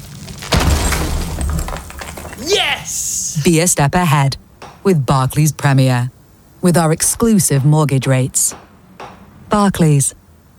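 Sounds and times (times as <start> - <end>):
crumbling masonry and falling debris: 0.0 - 3.6
heavy thud of a wall being knocked down: 0.4 - 2.5
speech: 2.4 - 8.6, 9.5 - 10.2.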